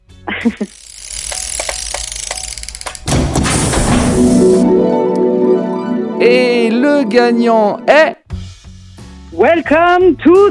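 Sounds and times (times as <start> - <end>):
speech: 0.4 - 0.9, 7.0 - 8.2, 9.3 - 10.4
short electronic announcement jingle: 3.9 - 8.2.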